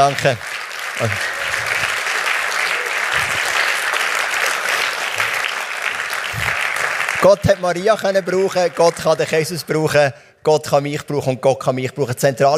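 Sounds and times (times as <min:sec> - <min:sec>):
speech: 0:00.0 - 0:01.6, 0:07.2 - 0:12.5
audience applause: 0:00.0 - 0:10.0.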